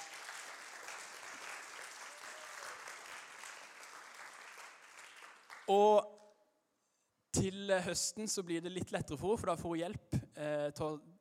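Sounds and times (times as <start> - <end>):
audience applause: 0.0 - 5.7
speech: 5.7 - 6.1, 7.4 - 11.1.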